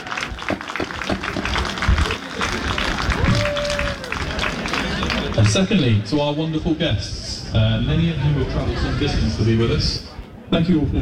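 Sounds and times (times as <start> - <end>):
round of applause: 0.0 - 5.5
speech: 5.4 - 10.9.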